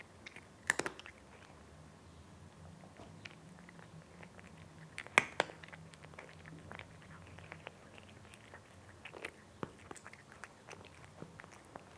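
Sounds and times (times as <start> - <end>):
cat eating crunchy food: 0.0 - 1.8, 2.5 - 11.9.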